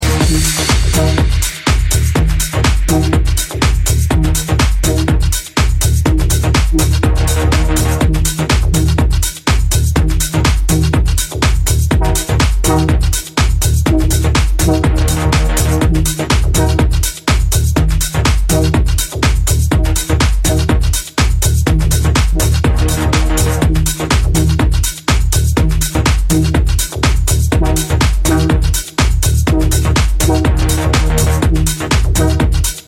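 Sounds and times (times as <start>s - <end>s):
tech house music: 0.0s - 32.8s.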